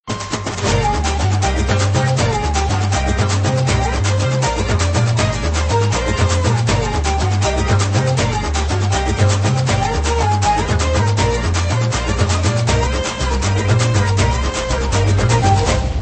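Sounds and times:
techno music: 0.1 - 15.9.

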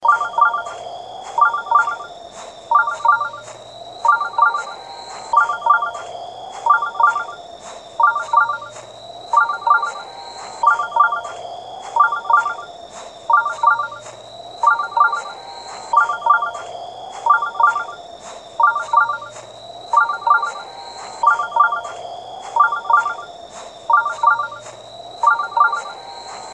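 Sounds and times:
shrine ringtone: 0.0 - 0.8, 1.4 - 2.1, 2.7 - 6.0, 6.7 - 7.4, 8.0 - 12.7, 13.3 - 16.6, 17.3 - 18.0, 18.6 - 26.5.

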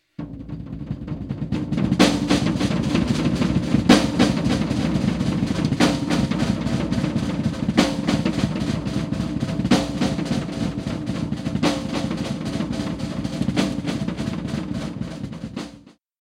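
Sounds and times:
snare drum: 0.0 - 16.0.

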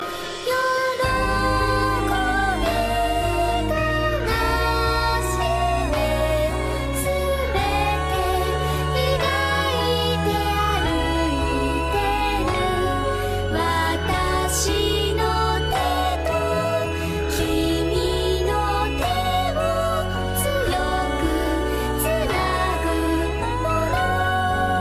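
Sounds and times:
song: 0.0 - 24.7.

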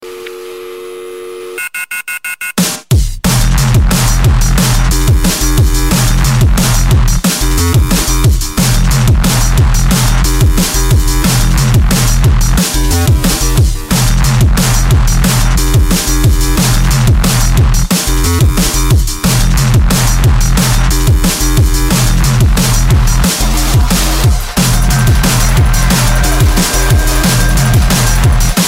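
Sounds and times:
drum and bass electronic ringtone: 2.5 - 28.6.

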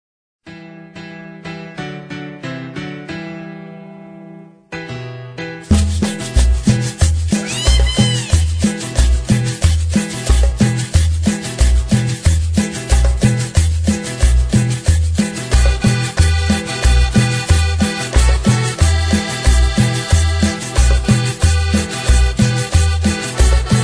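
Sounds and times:
rumba cha cha cha music: 4.8 - 23.8.

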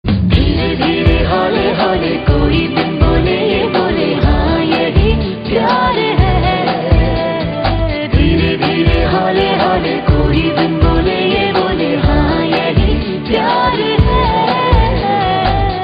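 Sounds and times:
acoustic music: 0.0 - 15.8.

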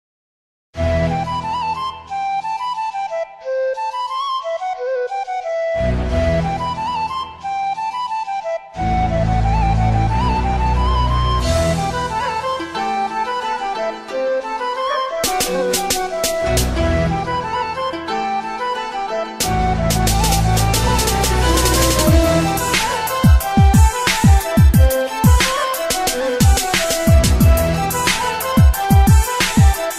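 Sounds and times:
oriental Arabic music: 0.8 - 29.9.

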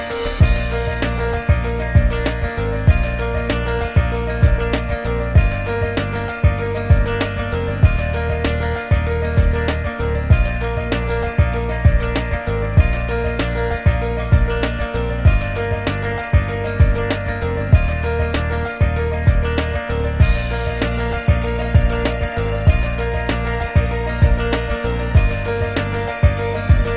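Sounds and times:
inspiring music: 0.0 - 26.9.

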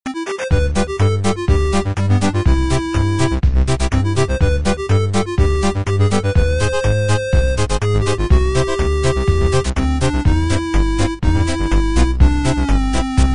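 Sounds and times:
8-bit music: 0.1 - 13.3.

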